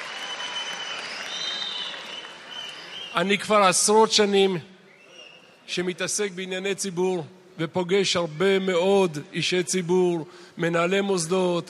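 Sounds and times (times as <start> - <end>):
audience applause: 0.0 - 3.0
speech: 3.1 - 4.7, 5.7 - 11.6.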